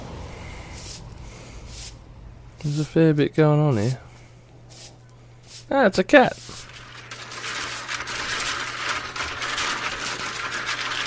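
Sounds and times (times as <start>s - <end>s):
speech: 2.6s - 4.1s, 5.7s - 6.6s
dominoes clattering: 6.2s - 11.0s.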